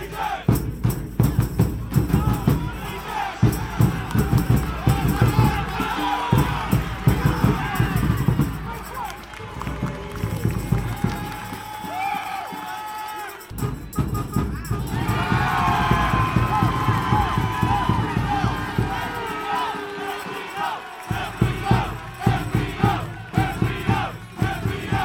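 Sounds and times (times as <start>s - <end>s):
Birmingham Legion FC fans roaring and cheering: 0.0s - 0.6s, 1.6s - 25.0s.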